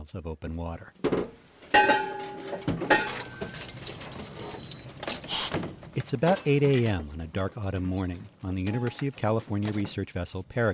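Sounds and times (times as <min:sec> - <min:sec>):
speech: 0:00.0 - 0:03.2, 0:05.3 - 0:10.7
scuba air tanks banging against heavy gear: 0:01.0 - 0:07.0, 0:08.6 - 0:10.0.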